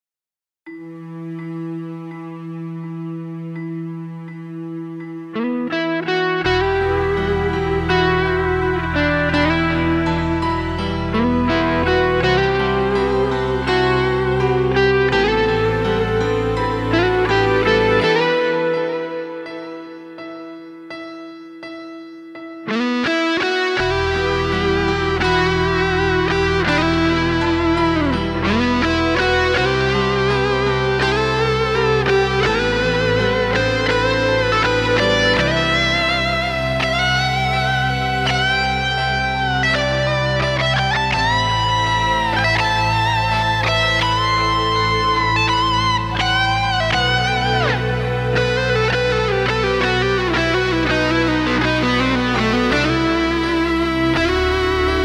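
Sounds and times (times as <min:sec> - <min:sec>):
instrumental music: 0:00.7 - 0:55.0.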